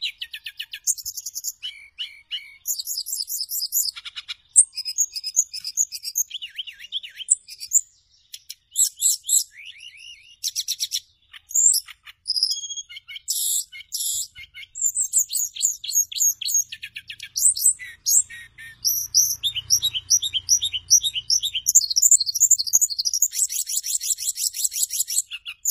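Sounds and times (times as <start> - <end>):
bird song: 0.0 - 25.6.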